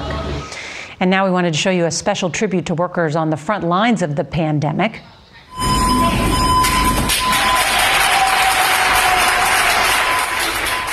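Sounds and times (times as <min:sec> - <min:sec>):
speech: 0:01.0 - 0:06.4
warm round of applause by doctors and nurses: 0:06.6 - 0:10.9.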